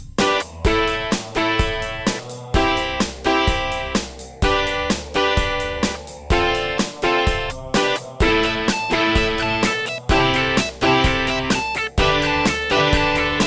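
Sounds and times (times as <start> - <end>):
Roland SonicCell GM2 template synthesizer sound: 0.2 - 13.4.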